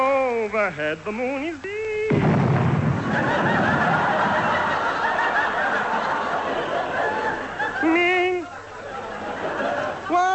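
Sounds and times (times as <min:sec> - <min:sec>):
speech: 0:00.5 - 0:02.4, 0:03.2 - 0:04.0
car engine bang from a blown gasket: 0:02.1 - 0:04.6
laughter: 0:02.9 - 0:10.3.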